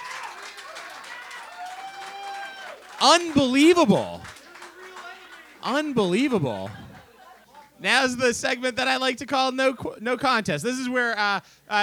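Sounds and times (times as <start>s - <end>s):
voices and whoops: 0.0s - 5.6s
audience applause: 0.0s - 7.0s
speech: 3.0s - 4.2s, 5.6s - 6.8s, 7.8s - 11.8s
laughter: 3.0s - 8.4s.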